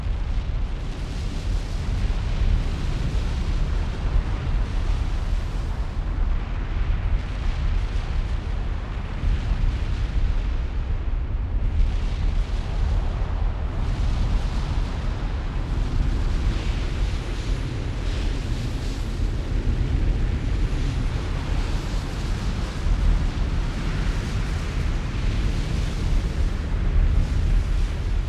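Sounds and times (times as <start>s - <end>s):
volcano erupting: 0.1s - 28.2s.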